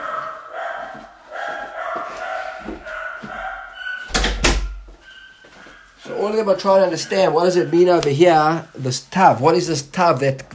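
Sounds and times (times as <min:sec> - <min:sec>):
door closing: 0:02.4 - 0:05.1
speech: 0:06.2 - 0:10.5.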